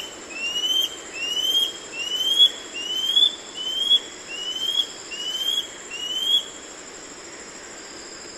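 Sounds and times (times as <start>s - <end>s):
scale-backed antbird short upslurred whistles: 0.0s - 6.5s.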